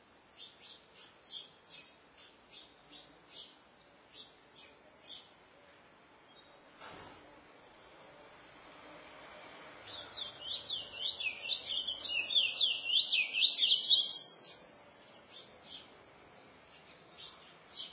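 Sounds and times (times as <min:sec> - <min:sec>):
Chestnut-bellied seed finch song: 0:00.3 - 0:05.4, 0:09.6 - 0:17.9.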